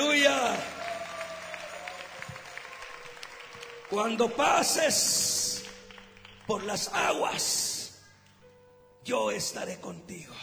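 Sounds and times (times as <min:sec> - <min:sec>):
audience applause: 0:00.0 - 0:07.5
speech: 0:03.9 - 0:05.4, 0:06.5 - 0:07.7, 0:09.0 - 0:10.4.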